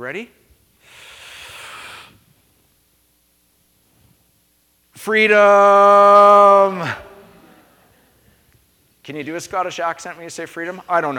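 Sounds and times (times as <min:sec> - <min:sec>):
speech: 0:00.0 - 0:01.0, 0:05.0 - 0:07.0, 0:09.0 - 0:11.1
deep breath during a religious gathering: 0:00.8 - 0:02.3.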